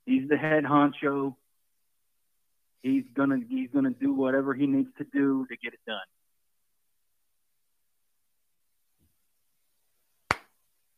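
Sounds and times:
speech: 0.2 - 1.4, 2.8 - 6.2
single hand clap of a slow clap: 10.3 - 10.6.

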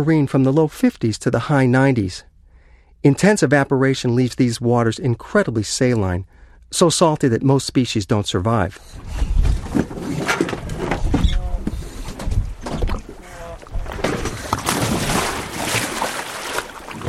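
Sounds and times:
speech: 0.0 - 2.3, 3.0 - 9.8
divers plunging into choppy wind-wrinkled water: 9.0 - 17.0.

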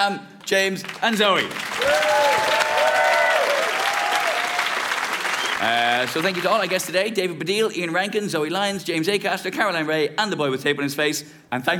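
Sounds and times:
speech: 0.0 - 2.6, 5.6 - 11.7
audience applause: 0.8 - 6.9.

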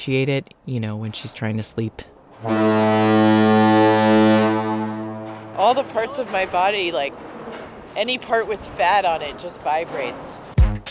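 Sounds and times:
speech: 0.0 - 4.4, 5.6 - 10.5
foghorn blast: 2.4 - 6.1.

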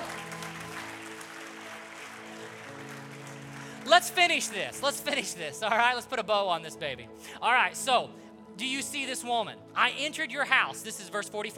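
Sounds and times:
audience clapping in praise: 0.0 - 5.4
held keyboard chords: 0.0 - 11.5
speech: 4.0 - 11.5.

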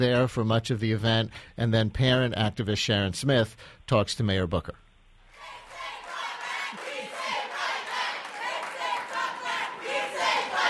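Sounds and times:
speech: 0.0 - 4.8
audience chanting and protesting at a public event with Mayor Booker: 5.4 - 10.6.

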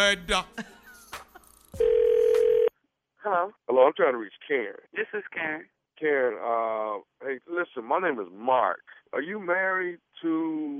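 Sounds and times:
speech: 0.0 - 0.7, 3.2 - 10.7
telephone ringing for a call: 1.8 - 2.7.

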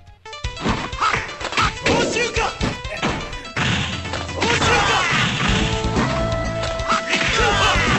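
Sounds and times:
tonal video game music: 0.0 - 7.9
video game punches, whacks and crashing impacts: 0.6 - 6.2.

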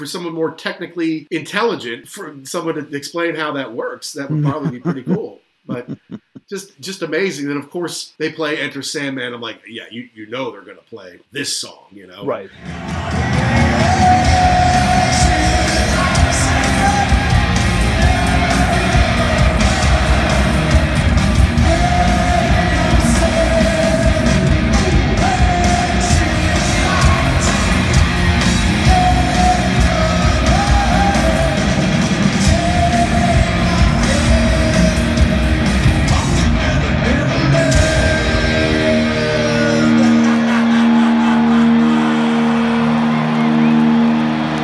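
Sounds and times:
speech: 0.0 - 14.7
laughter: 4.3 - 6.5, 39.8 - 41.8
concert crowd cheering and yelling: 12.6 - 44.6.

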